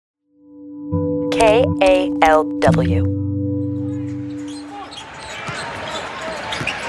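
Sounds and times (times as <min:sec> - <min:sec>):
held tonal chord: 0:00.4 - 0:04.9
speech: 0:01.4 - 0:03.2.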